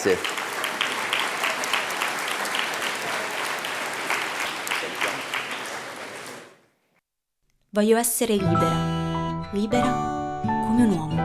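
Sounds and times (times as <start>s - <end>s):
speech: 0.0s - 0.4s, 7.8s - 8.9s, 9.5s - 10.1s, 10.8s - 11.2s
audience applause: 0.0s - 6.6s.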